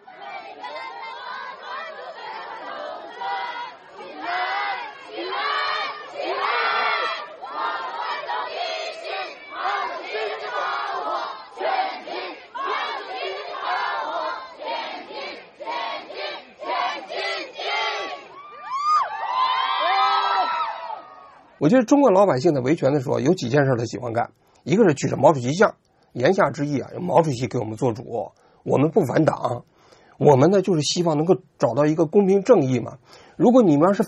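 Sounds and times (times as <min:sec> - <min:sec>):
crowd clashing with police, shouting: 0:00.0 - 0:21.7
speech: 0:21.6 - 0:34.0.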